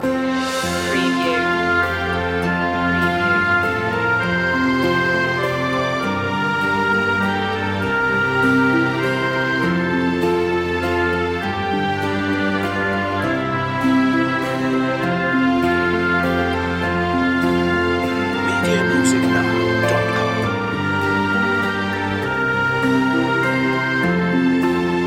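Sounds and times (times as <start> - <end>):
orchestral music loop: 0.0 - 25.0.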